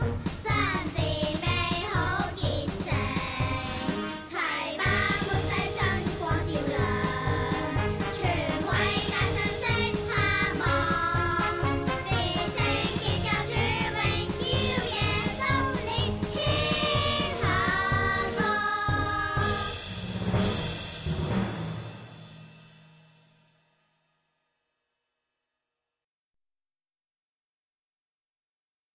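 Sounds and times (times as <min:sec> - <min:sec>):
Chinese song: 0:00.0 - 0:22.5.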